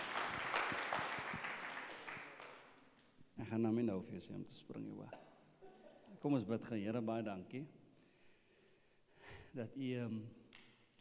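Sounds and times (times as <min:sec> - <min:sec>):
audience clapping hands: 0:00.0 - 0:02.8
speech: 0:03.5 - 0:05.3, 0:06.2 - 0:07.8, 0:09.5 - 0:10.4.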